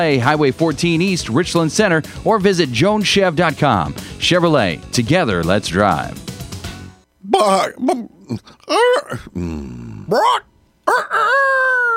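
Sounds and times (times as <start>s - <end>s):
speech: 0.0s - 6.3s, 7.4s - 11.9s
person imitating rooster crowing: 8.7s - 11.9s.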